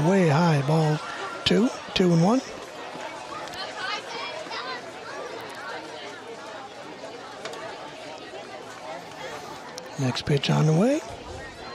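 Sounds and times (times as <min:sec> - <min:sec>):
speech: 0:00.0 - 0:02.6, 0:10.0 - 0:11.1
crowd chatter at a ballpark: 0:00.0 - 0:11.7.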